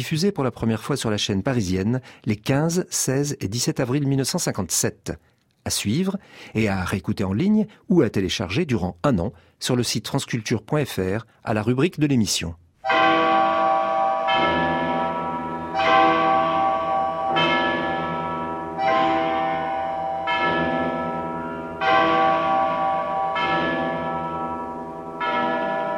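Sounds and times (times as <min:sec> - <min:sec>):
speech: 0:00.0 - 0:13.0
large church bell of Notre-Dame cathedral in Paris ringing: 0:12.8 - 0:25.9.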